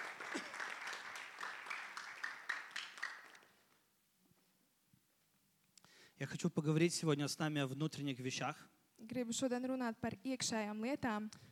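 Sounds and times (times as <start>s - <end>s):
group applauding: 0.0s - 3.8s
speech: 6.2s - 11.5s.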